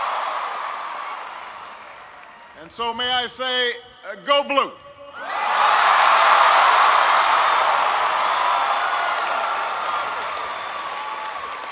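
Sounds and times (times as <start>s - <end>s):
audience applause: 0.0s - 2.4s, 5.9s - 11.6s
speech: 2.6s - 5.4s.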